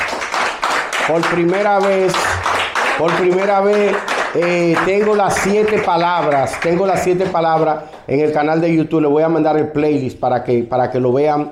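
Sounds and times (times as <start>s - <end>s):
hand clapping at a religious gathering: 0.0s - 8.7s
speech: 1.1s - 2.4s, 3.0s - 11.5s.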